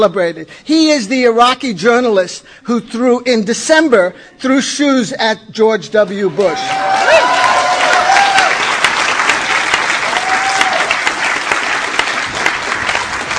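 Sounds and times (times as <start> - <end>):
speech: 0.0 - 7.3
audience applause: 6.4 - 13.3.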